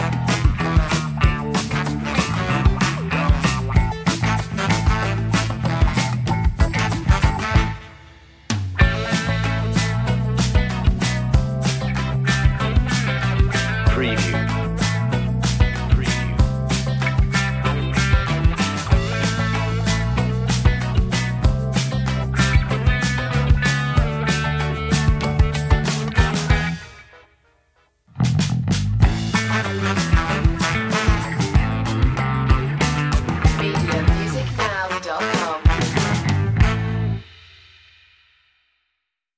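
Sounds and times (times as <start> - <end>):
hot funky groove music: 0.0 - 27.2, 28.1 - 37.4.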